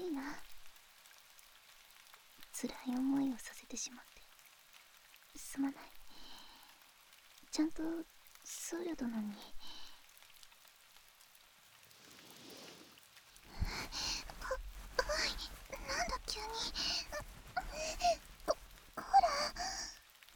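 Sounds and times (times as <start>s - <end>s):
speech: 2.6s - 4.2s, 5.4s - 6.0s, 7.5s - 9.7s
breathy sniffling: 13.5s - 20.0s
person crying: 13.6s - 20.0s.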